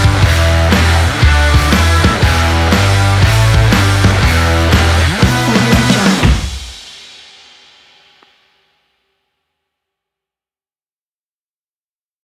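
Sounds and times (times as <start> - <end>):
rock drive music: 0.0 - 7.1.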